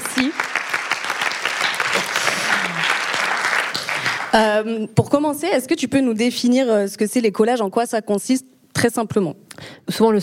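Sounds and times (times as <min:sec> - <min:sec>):
audience applause: 0:00.0 - 0:04.4
speech: 0:00.2 - 0:00.5, 0:04.4 - 0:10.2.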